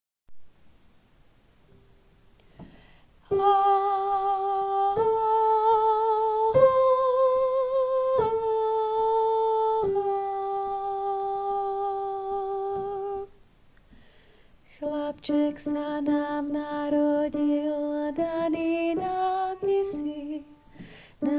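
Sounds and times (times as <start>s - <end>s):
soprano voice: 3.2s - 13.4s, 14.7s - 21.3s.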